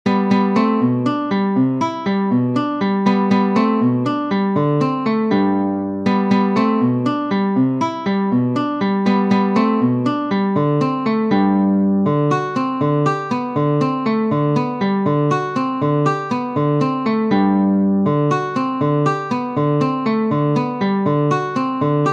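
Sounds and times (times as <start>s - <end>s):
waltz on guitar: 0.1s - 22.1s.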